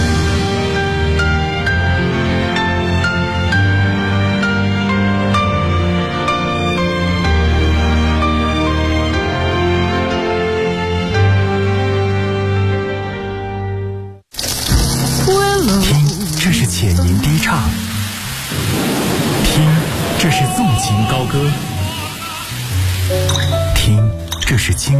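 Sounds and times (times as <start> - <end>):
music: 0.0 - 24.9
water running from a tap: 14.3 - 23.8
person talking: 15.2 - 17.9, 19.4 - 22.6, 23.6 - 24.9.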